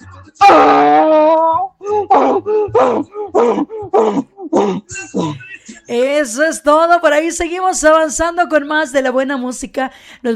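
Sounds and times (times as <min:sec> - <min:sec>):
speech: 0:00.3 - 0:00.9, 0:06.2 - 0:10.3
person imitating donkey braying: 0:00.4 - 0:05.5.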